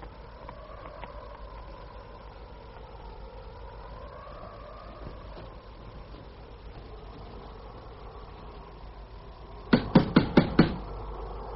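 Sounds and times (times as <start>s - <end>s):
knocking on a door: 9.7s - 10.8s.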